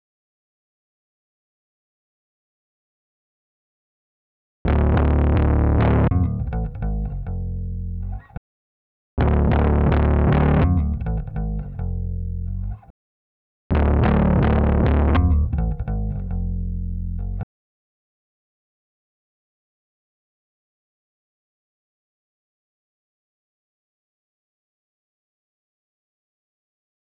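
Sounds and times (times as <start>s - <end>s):
bass: 4.7s - 8.4s, 9.2s - 12.9s, 13.7s - 17.5s.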